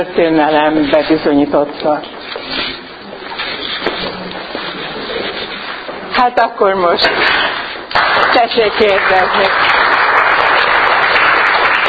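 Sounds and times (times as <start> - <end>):
speech: 0.0 - 2.6, 6.2 - 7.4, 8.4 - 9.7
audience applause: 7.9 - 11.8.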